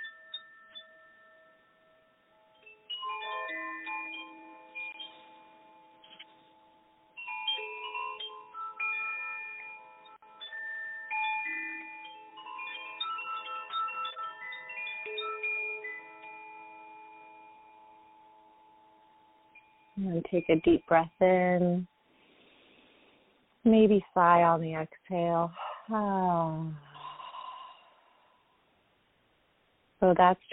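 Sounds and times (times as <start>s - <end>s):
chimes instrument ringing: 0.0s - 22.8s
speech: 20.0s - 21.9s, 23.6s - 26.9s, 30.0s - 30.5s.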